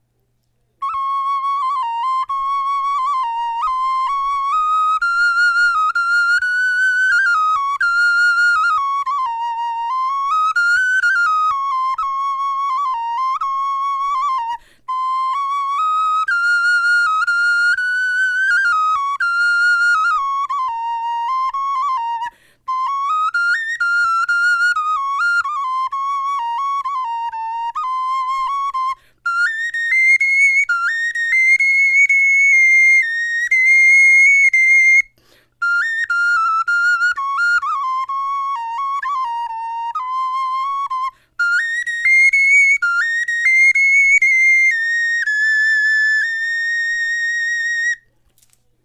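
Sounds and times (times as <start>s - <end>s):
bone flute melody: 0.6s - 48.2s.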